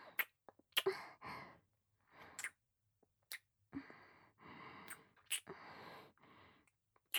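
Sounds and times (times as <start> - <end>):
kissing: 0.1 - 0.9, 2.4 - 2.6, 4.9 - 5.6.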